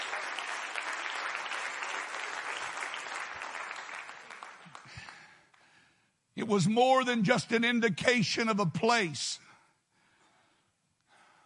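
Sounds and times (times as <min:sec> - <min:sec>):
audience clapping hands: 0:00.0 - 0:05.7
speech: 0:06.4 - 0:09.4.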